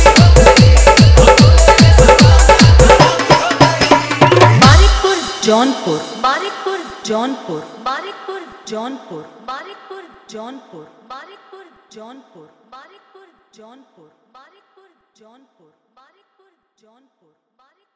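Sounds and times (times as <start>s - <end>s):
Holi desi dance mix with hard dholki: 0.0s - 10.0s.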